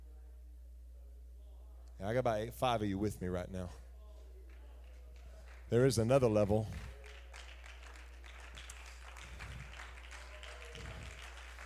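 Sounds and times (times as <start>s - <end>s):
speech: 2.0s - 3.8s, 5.7s - 6.9s
quiet polite golf clap from a small audience: 4.2s - 11.6s.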